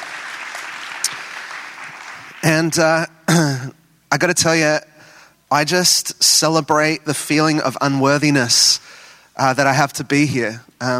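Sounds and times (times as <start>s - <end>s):
audience applause: 0.0s - 2.8s
speech: 2.4s - 4.9s, 5.5s - 10.9s.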